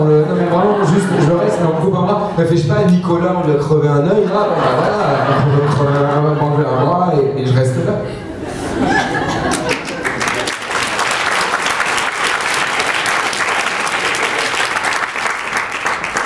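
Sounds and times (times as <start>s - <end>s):
speech: 0.0s - 8.8s
laughter: 0.0s - 16.2s
audience applause: 8.4s - 16.2s.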